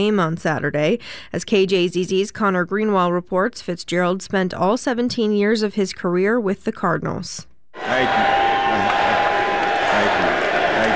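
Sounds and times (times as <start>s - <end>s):
speech: 0.0s - 8.4s
crowd chanting at induction ceremony in Canton, Ohio: 7.8s - 10.9s.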